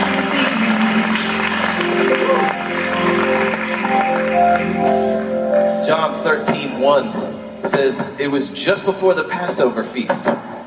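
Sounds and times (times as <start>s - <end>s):
crowd clapping: 0.0s - 5.8s
sustained musical tones: 0.0s - 9.2s
speech: 6.9s - 10.5s.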